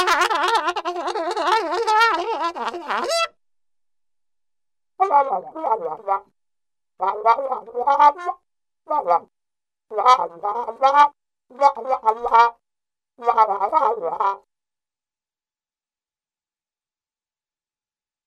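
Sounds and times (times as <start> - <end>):
cartoon plunger muted trumpet: 0.0 - 3.4, 5.0 - 6.3, 7.0 - 9.3, 9.9 - 12.6, 13.2 - 14.5.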